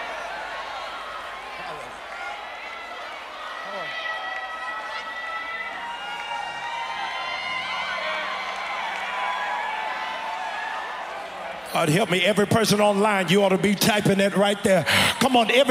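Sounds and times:
church audience shouting: 0.0s - 11.7s
speech: 11.8s - 15.6s.

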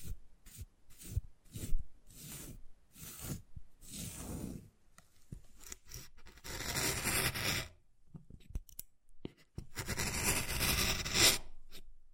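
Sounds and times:
wood carving scraping: 0.5s - 4.6s, 5.6s - 7.7s, 9.3s - 11.8s.

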